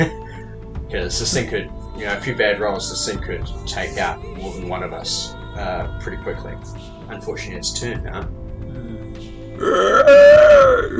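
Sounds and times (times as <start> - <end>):
speech: 0.0 - 0.2, 0.9 - 10.2
voice imitating an alien creature's scream: 9.6 - 10.9.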